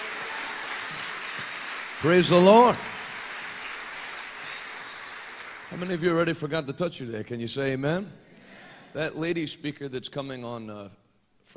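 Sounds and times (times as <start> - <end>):
audience hand clapping: 0.0 - 6.4
speech: 2.0 - 2.9, 5.7 - 8.2, 8.9 - 11.5.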